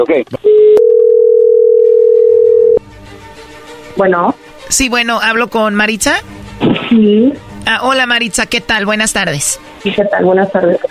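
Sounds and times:
speech: 0.0 - 0.6, 4.0 - 10.8
telephone dial tone while calling: 0.4 - 2.8.

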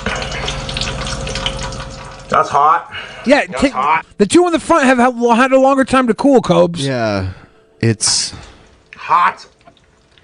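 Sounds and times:
hot frying oil crackling: 0.0 - 3.2, 8.5 - 10.2
speech: 2.3 - 8.5, 9.1 - 9.5.

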